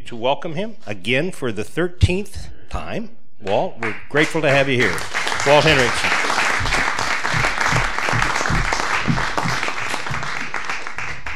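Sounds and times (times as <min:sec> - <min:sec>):
speech: 0:00.1 - 0:06.2
audience clapping: 0:03.8 - 0:11.3.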